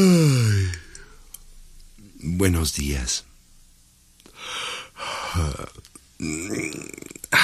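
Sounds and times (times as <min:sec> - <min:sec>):
person yawning: 0:00.0 - 0:00.9, 0:05.0 - 0:07.4
speech: 0:02.4 - 0:03.3, 0:04.4 - 0:07.4.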